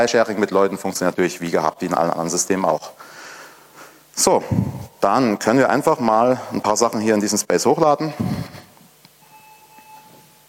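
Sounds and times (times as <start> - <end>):
speech: 0.0 - 3.2, 4.2 - 8.6
low hum: 0.0 - 10.4
electronic notification beep: 9.2 - 10.3.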